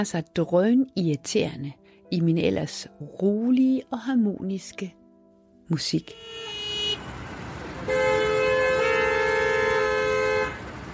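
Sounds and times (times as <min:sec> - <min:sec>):
speech: 0:00.0 - 0:05.0, 0:05.7 - 0:06.5
Copenhagen cars stuck in blocked traffic: 0:06.0 - 0:10.9.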